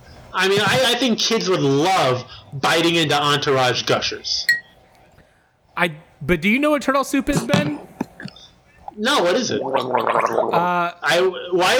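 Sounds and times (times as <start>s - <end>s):
speech: 0.4s - 4.6s, 5.8s - 7.9s, 9.0s - 11.7s
person gargling water in the mouth: 7.4s - 11.0s.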